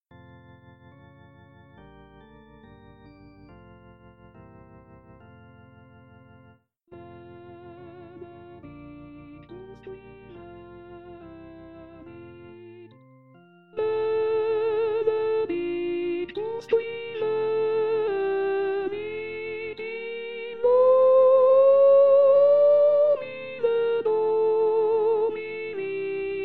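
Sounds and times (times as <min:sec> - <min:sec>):
sopranos singing a Benedictus: 0:07.0 - 0:13.0, 0:13.8 - 0:26.4.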